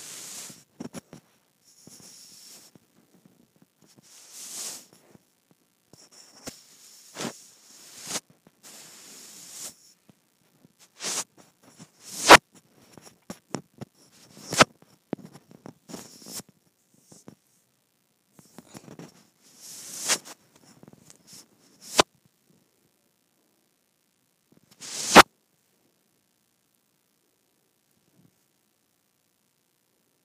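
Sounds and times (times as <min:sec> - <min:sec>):
microphone rubbed against skin: 0:00.0 - 0:05.3, 0:05.9 - 0:17.6, 0:18.4 - 0:22.1, 0:24.6 - 0:25.2.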